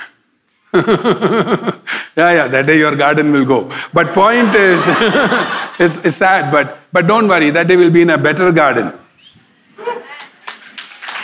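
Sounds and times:
speech: 0:00.7 - 0:09.0
laughter: 0:04.0 - 0:06.0
audience clapping: 0:10.1 - 0:11.2.

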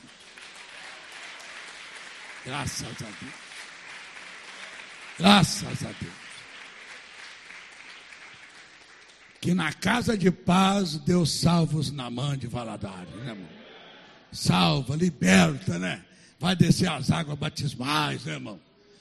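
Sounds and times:
audience applauding: 0:00.0 - 0:09.6
speech: 0:02.4 - 0:03.4, 0:05.2 - 0:06.2, 0:09.4 - 0:13.6, 0:14.3 - 0:18.7.

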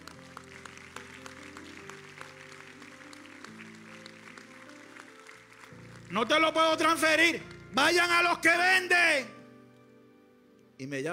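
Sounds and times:
audience applause: 0:00.0 - 0:06.9
speech: 0:06.1 - 0:09.4, 0:10.8 - 0:11.1.

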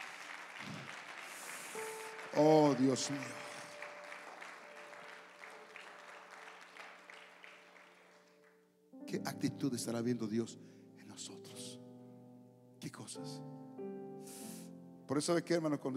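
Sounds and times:
audience applause: 0:00.0 - 0:08.6
speech: 0:02.4 - 0:03.4, 0:09.1 - 0:11.4, 0:12.9 - 0:14.0, 0:15.1 - 0:15.9.

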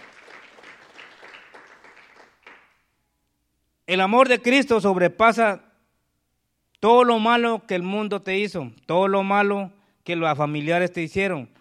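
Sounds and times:
audience applause: 0:00.0 - 0:02.8
speech: 0:03.9 - 0:05.7, 0:06.8 - 0:11.5.

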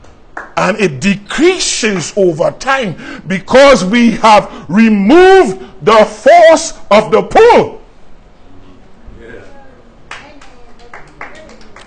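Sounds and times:
speech: 0:00.6 - 0:07.8
scattered applause from a small group: 0:10.1 - 0:11.8.

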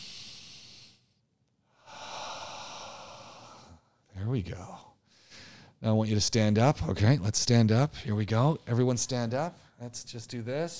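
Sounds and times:
deep breaths out through the mouth during a guided relaxation exercise: 0:01.7 - 0:04.0, 0:05.0 - 0:05.8
speech: 0:04.4 - 0:04.9, 0:05.8 - 0:10.7.

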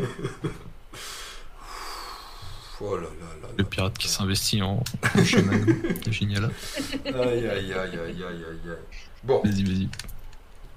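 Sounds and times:
speech: 0:00.0 - 0:00.5, 0:02.8 - 0:10.2
laughter: 0:00.0 - 0:00.7, 0:05.0 - 0:08.8
long deep breath drawn in: 0:00.9 - 0:02.8.

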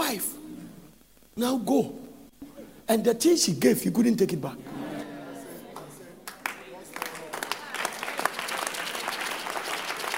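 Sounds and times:
speech: 0:00.1 - 0:00.3, 0:01.4 - 0:02.0, 0:02.9 - 0:04.7
murmuring voices: 0:04.6 - 0:09.1
audience clapping: 0:05.7 - 0:10.1.

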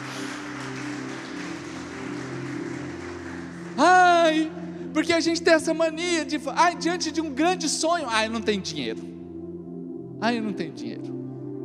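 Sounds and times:
audience applauding loudly: 0:00.0 - 0:05.2
speech: 0:03.8 - 0:09.1, 0:10.2 - 0:11.2.

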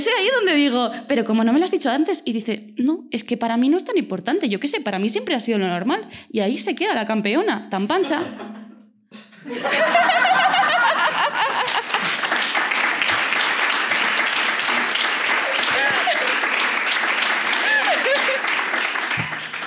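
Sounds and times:
speech: 0:00.1 - 0:10.5
laughter and chuckling: 0:08.0 - 0:12.1, 0:15.4 - 0:16.5, 0:17.5 - 0:18.7
hands clapping into the microphone: 0:10.8 - 0:19.6.

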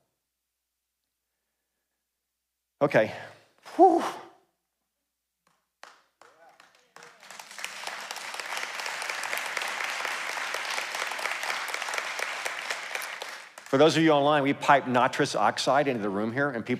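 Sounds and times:
speech: 0:02.8 - 0:04.2, 0:13.7 - 0:16.7
audience applause: 0:05.8 - 0:14.3.

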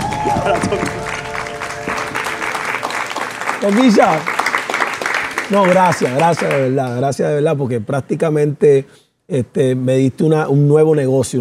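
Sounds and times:
audience applause: 0:00.0 - 0:06.8
speech: 0:00.2 - 0:01.2, 0:03.6 - 0:04.4, 0:05.5 - 0:11.3.

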